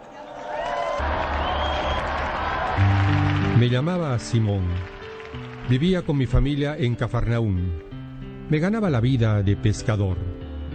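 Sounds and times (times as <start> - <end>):
audience applause: 0.0 - 6.7
speech: 3.6 - 7.9, 8.5 - 10.2.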